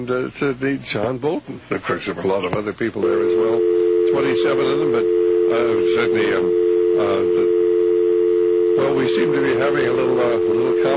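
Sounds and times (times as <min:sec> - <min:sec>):
speech: 0:00.0 - 0:07.6, 0:08.8 - 0:10.9
telephone dial tone on the line: 0:03.2 - 0:10.9.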